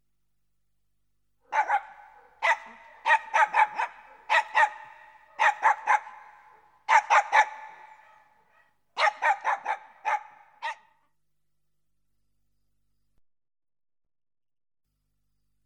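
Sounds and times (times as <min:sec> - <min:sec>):
dog yelping: 0:01.5 - 0:10.8.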